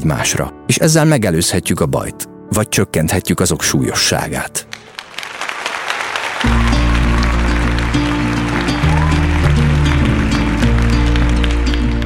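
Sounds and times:
speech: 0:00.0 - 0:04.7
theatre audience applauding: 0:04.7 - 0:12.0.

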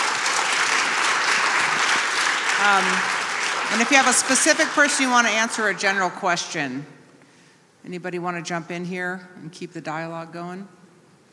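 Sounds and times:
audience applause: 0:00.0 - 0:06.1
speech: 0:02.6 - 0:07.0, 0:07.8 - 0:10.8.

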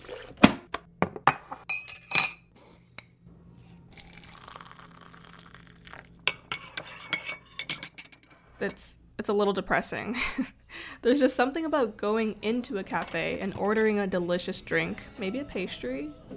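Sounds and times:
coffee shop clatter of dishes and cutlery: 0:01.3 - 0:03.8, 0:06.3 - 0:08.8, 0:12.9 - 0:14.1
soft stirring: 0:02.6 - 0:07.7
speech: 0:08.6 - 0:16.3.

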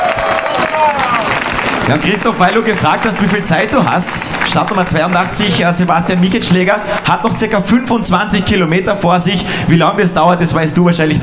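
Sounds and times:
cheers and whistles: 0:00.0 - 0:01.5
crowd applause: 0:00.0 - 0:07.8
speech: 0:01.9 - 0:11.2.

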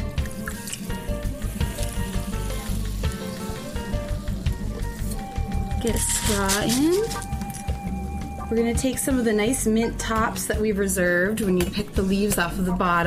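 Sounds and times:
club soda fizzing over crushed ice: 0:00.1 - 0:07.8
speech: 0:05.9 - 0:07.3, 0:08.5 - 0:13.0
shifting ice clinking: 0:05.9 - 0:07.8.

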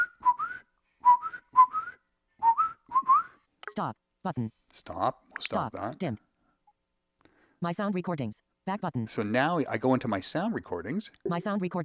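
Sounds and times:
person whistling an imitation of a bird call: 0:00.0 - 0:03.4
speech: 0:03.8 - 0:06.3, 0:07.6 - 0:11.8.

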